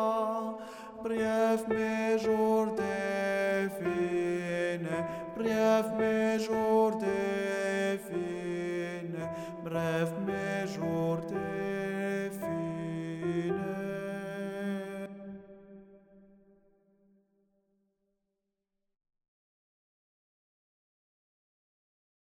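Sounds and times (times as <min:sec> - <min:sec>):
soprano singing: 0:00.0 - 0:15.9.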